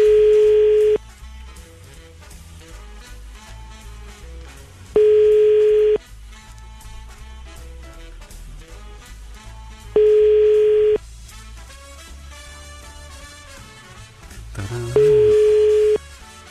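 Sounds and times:
telephone ringback tone: 0.0s - 1.0s, 5.0s - 6.0s, 10.0s - 11.0s, 14.9s - 16.0s
music: 0.0s - 16.4s.

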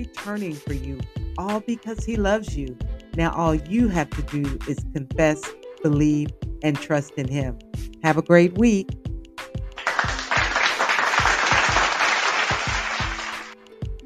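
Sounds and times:
speech: 0.0s - 9.0s
applause sound effect: 9.8s - 13.6s.

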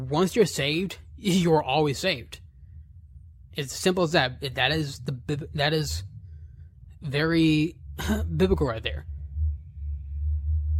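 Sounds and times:
speech: 0.1s - 2.4s, 3.6s - 6.1s, 7.0s - 9.1s
neighbor's car passing outside: 5.2s - 10.7s.

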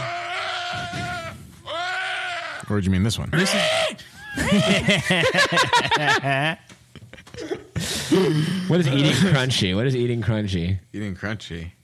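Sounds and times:
deer call, nasal bleating cry: 0.0s - 2.7s
speech: 2.7s - 6.7s, 8.2s - 11.8s
laughter: 4.2s - 9.6s.

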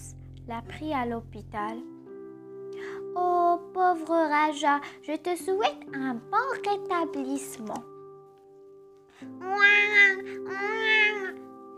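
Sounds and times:
speech: 0.5s - 2.0s, 3.2s - 7.9s, 9.2s - 11.4s
baby crying: 9.3s - 11.7s.

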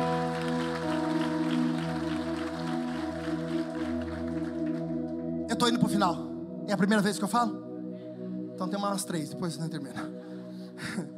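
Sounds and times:
audience applauding: 0.0s - 5.0s
speech: 5.6s - 7.6s, 8.6s - 10.2s.

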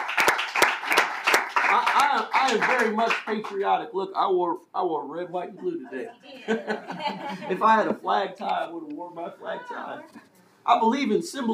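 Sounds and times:
audience hand clapping: 0.0s - 3.6s
speech: 2.2s - 11.5s
laughter: 5.4s - 8.7s.

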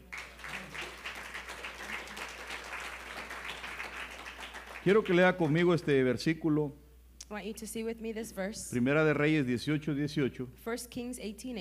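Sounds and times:
audience clapping: 0.0s - 5.8s
speech: 4.8s - 11.5s.

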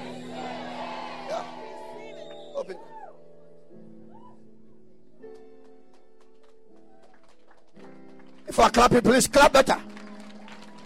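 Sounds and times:
audience shouting: 0.0s - 3.0s
speech: 8.6s - 9.9s.

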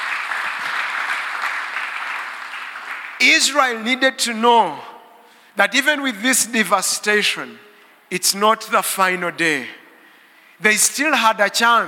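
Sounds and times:
audience clapping hands: 0.0s - 3.8s
speech: 3.2s - 4.9s, 5.6s - 9.8s, 10.6s - 11.8s.

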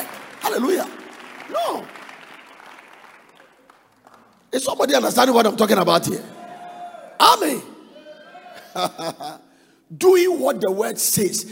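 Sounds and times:
audience clapping: 0.0s - 5.8s
speech: 0.6s - 2.0s, 4.5s - 6.4s, 7.2s - 7.7s, 8.8s - 11.5s.

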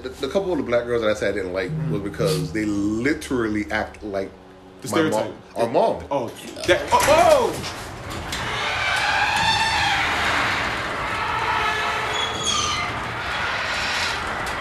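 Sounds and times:
speech: 0.0s - 7.9s
garage door opening: 6.7s - 14.5s.

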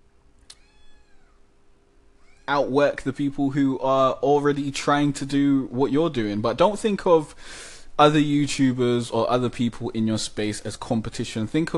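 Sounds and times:
cat meowing: 0.5s - 1.4s, 2.2s - 2.5s
speech: 2.5s - 11.7s.

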